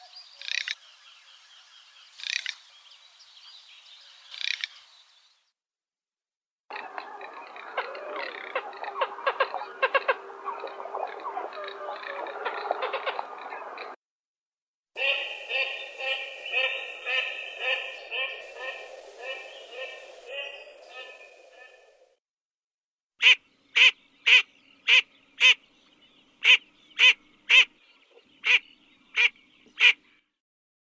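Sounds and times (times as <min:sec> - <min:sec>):
garganey calling: 0:06.7 - 0:14.0, 0:15.0 - 0:21.9, 0:23.2 - 0:25.6, 0:26.4 - 0:27.7, 0:28.4 - 0:28.6, 0:29.2 - 0:30.0.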